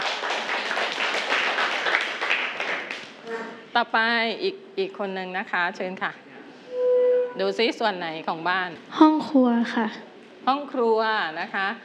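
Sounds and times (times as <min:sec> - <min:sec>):
children clapping for a classmate: 0:00.0 - 0:03.2
speech: 0:03.8 - 0:06.2, 0:07.4 - 0:11.8.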